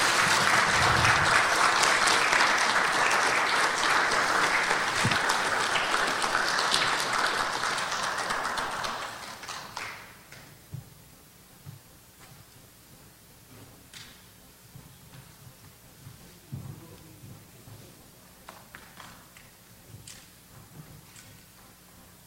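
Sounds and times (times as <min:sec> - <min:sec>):
audience applause welcoming Dr. Charles H. Long: 0:00.0 - 0:10.3.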